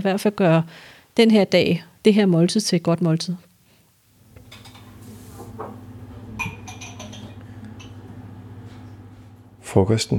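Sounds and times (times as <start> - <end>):
speech: 0.0 - 3.5, 9.8 - 10.1
kitchen assistants putting away cutlery: 4.4 - 5.7.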